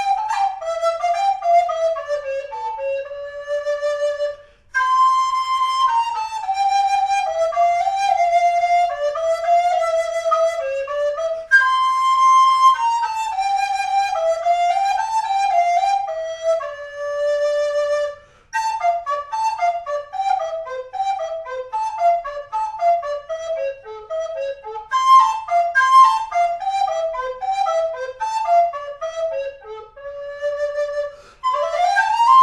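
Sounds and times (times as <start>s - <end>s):
alto recorder melody: 0.0s - 32.4s.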